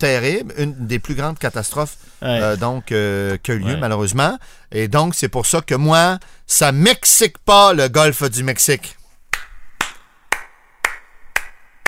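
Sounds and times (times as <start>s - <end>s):
speech: 0.0s - 9.0s
applause with slight echo: 9.8s - 11.8s.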